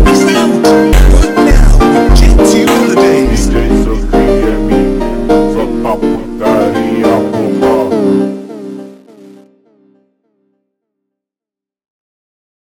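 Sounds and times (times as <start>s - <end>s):
super slowed funk music: 0.0s - 9.5s.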